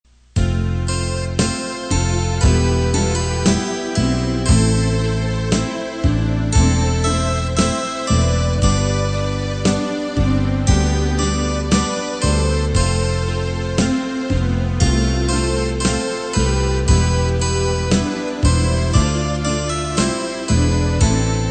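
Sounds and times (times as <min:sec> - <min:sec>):
bass: 0:00.0 - 0:21.4.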